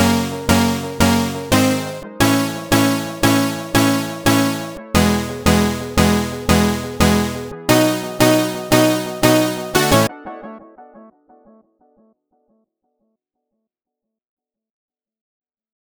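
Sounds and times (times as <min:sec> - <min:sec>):
175 BPM electro music: 0:00.0 - 0:10.4.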